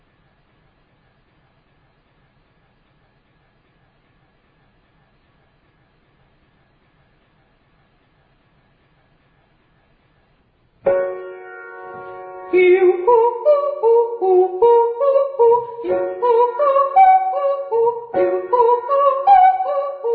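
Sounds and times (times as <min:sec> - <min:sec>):
ascending triads and octaves: 0:10.9 - 0:20.1.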